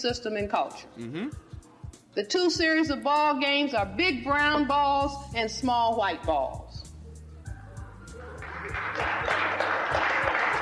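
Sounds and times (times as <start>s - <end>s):
speech: 0.0s - 6.7s
clapping: 8.2s - 10.6s.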